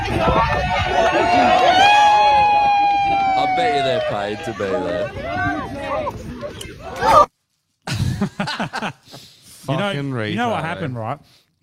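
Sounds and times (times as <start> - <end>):
crowd cheering in a video: 0.0 - 7.3
speech: 3.6 - 7.3, 8.2 - 11.6
laughter: 7.9 - 9.1.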